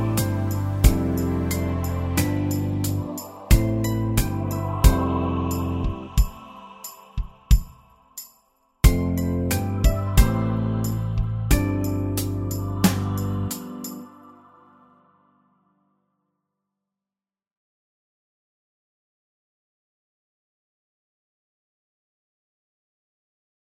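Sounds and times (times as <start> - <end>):
instrumental music: 0.0 - 15.2.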